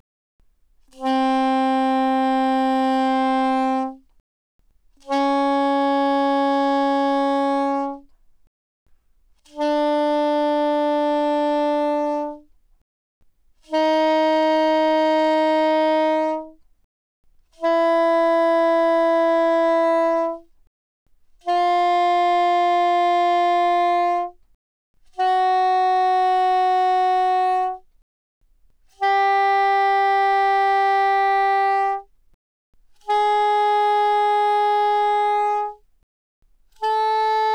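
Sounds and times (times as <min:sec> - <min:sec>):
soprano saxophone without vibrato: 0:00.8 - 0:04.1, 0:05.0 - 0:08.2, 0:09.4 - 0:12.6, 0:13.6 - 0:16.7, 0:17.5 - 0:20.6, 0:21.4 - 0:24.5, 0:25.1 - 0:28.0, 0:28.9 - 0:32.1, 0:33.0 - 0:35.9, 0:36.7 - 0:37.5.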